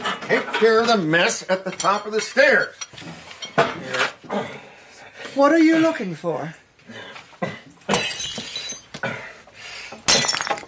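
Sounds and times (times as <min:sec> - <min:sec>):
speech: 0:00.3 - 0:04.7, 0:05.3 - 0:07.5
glass jars being smashed: 0:07.9 - 0:08.9, 0:10.1 - 0:10.6
glass shards tinkling: 0:08.0 - 0:08.9, 0:10.1 - 0:10.6.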